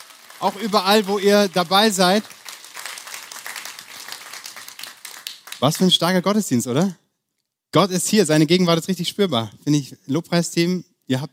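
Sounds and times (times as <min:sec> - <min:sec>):
crowd applause: 0:00.0 - 0:05.9
speech: 0:00.4 - 0:02.4, 0:05.6 - 0:07.0, 0:07.7 - 0:11.3.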